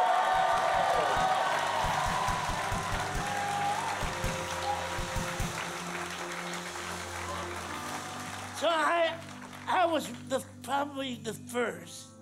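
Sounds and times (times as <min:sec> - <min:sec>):
audience clapping: 0:00.0 - 0:10.3
speech: 0:09.9 - 0:12.1.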